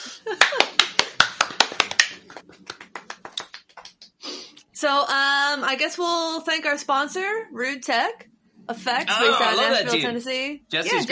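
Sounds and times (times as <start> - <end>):
people clapping: 0.3 - 4.2
speech: 4.8 - 11.1.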